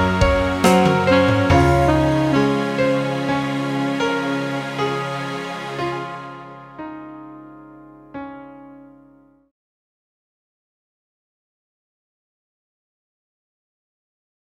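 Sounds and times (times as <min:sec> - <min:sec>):
karaoke backing track: 0:00.0 - 0:05.1.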